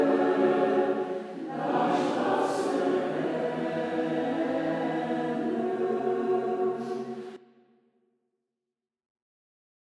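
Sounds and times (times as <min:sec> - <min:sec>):
audience singing along: 0:00.0 - 0:07.4.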